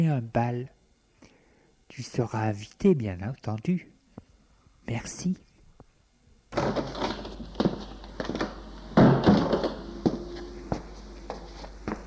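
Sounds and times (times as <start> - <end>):
speech: 0.0 - 0.8, 1.9 - 3.9, 4.9 - 5.4
door opening with clicks and creak: 6.6 - 10.8.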